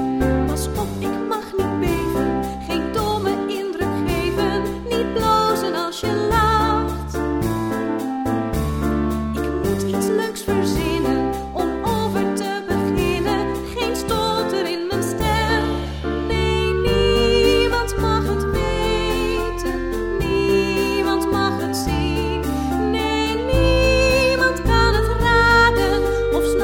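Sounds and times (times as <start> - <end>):
sing-along version of a song: 0.2 - 8.1, 9.3 - 26.6.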